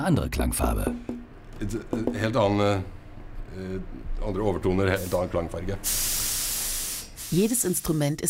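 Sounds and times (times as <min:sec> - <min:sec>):
speech: 0:00.0 - 0:06.3, 0:07.3 - 0:08.2
spray paint hissing while spraying an instrument by hand: 0:04.9 - 0:08.2.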